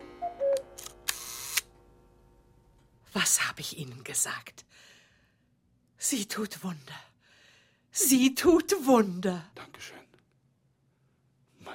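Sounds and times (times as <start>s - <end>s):
camera shutter clicks: 0.8s - 1.7s
speech: 3.1s - 5.0s, 6.0s - 7.1s, 7.9s - 10.1s.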